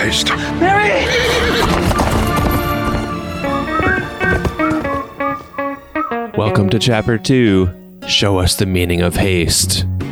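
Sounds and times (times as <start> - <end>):
speech: 0.0 - 1.9, 6.4 - 10.0
horse Shadowfax neighing: 0.8 - 7.1
horse Shadowfax galloping: 1.2 - 7.8.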